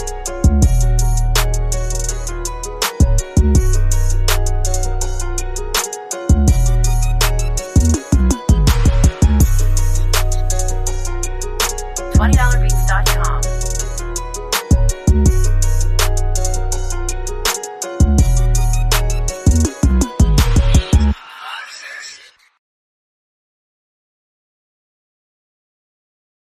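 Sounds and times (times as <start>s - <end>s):
trap beats: 0.0s - 21.2s.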